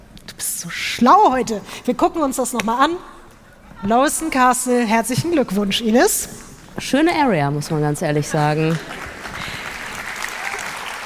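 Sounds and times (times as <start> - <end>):
speech: 0.5 - 3.2, 3.8 - 9.0
audience applause: 8.7 - 11.0.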